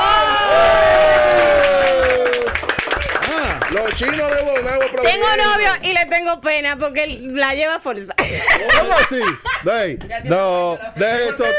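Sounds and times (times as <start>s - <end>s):
audience applause: 0.0s - 5.6s
speech: 4.0s - 11.5s
laughter: 8.2s - 10.2s, 10.8s - 11.5s.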